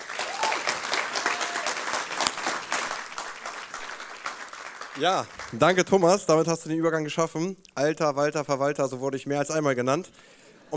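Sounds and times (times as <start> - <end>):
audience applause: 0.0 - 6.2
speech: 5.0 - 10.7.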